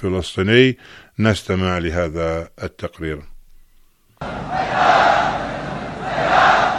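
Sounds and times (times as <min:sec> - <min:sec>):
speech: 0:00.0 - 0:03.3
huge crowd chanting slogans at an Ashura mass march in Sanaa, Yemen: 0:04.2 - 0:06.7.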